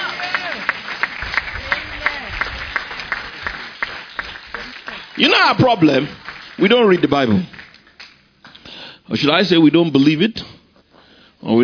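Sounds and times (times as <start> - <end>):
audience clapping in a steady rhythmic beat: 0.0 - 8.7
speech: 5.2 - 7.6, 9.1 - 10.5, 11.4 - 11.6.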